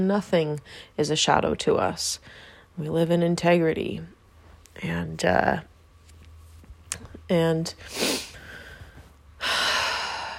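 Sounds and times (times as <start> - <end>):
speech: 0.0 - 4.2, 4.8 - 5.7, 6.9 - 8.2
deep breath: 7.9 - 10.3.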